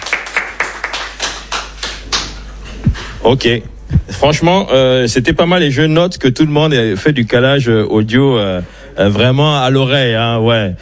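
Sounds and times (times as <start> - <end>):
hand claps for a DJ school team: 0.0 - 2.5
speech: 3.2 - 10.7.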